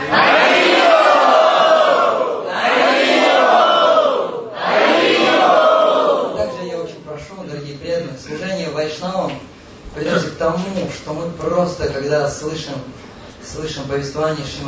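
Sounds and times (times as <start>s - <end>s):
crowd shouting a devotional chant together: 0.0s - 6.4s
speech: 10.4s - 14.6s.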